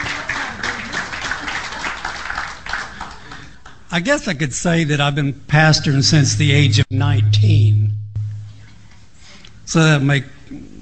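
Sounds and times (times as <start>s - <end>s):
church audience applause welcoming a speaker: 0.0s - 3.5s
speech: 3.9s - 8.0s, 9.7s - 10.7s.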